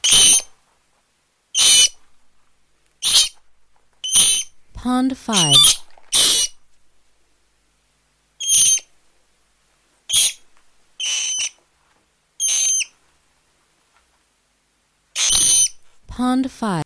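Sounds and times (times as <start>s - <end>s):
rat squeaks: 0.0s - 0.5s, 1.5s - 2.0s, 3.0s - 3.4s, 4.0s - 4.6s, 5.4s - 6.6s, 8.4s - 8.9s, 10.1s - 11.6s, 12.4s - 13.0s, 15.2s - 15.8s
speech: 4.8s - 6.3s, 16.6s - 16.8s.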